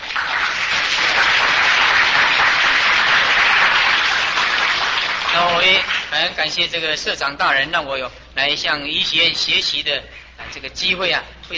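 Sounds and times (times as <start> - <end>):
audience applause: 0.0 - 6.1
speech: 6.1 - 11.5.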